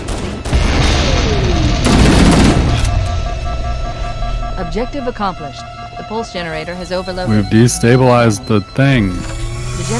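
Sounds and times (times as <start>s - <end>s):
video game gunfire: 0.0s - 3.6s
descending whine: 0.6s - 9.9s
speech: 4.7s - 9.9s.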